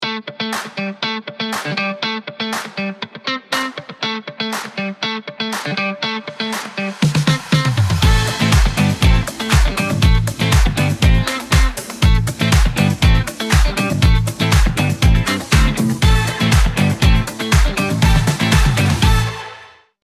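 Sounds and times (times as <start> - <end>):
funky disco music: 0.0 - 19.8.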